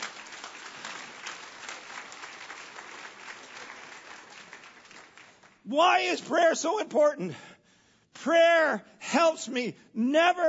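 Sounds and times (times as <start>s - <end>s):
audience applause: 0.0s - 5.6s
speech: 5.7s - 7.5s, 8.2s - 10.4s.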